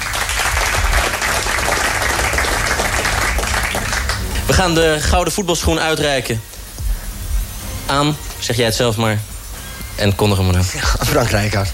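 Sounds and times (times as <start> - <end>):
crowd applause: 0.0 - 4.8
speech: 4.6 - 6.5, 7.9 - 9.3, 10.0 - 11.7.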